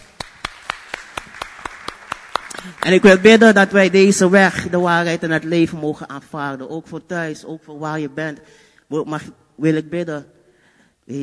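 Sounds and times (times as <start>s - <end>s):
applause during a church service: 0.0s - 4.8s
speech: 2.6s - 10.4s, 11.1s - 11.2s.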